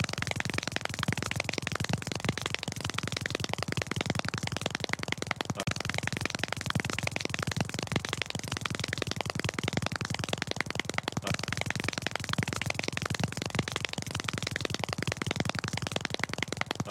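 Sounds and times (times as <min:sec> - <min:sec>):
fast clapping: 0:00.0 - 0:16.8.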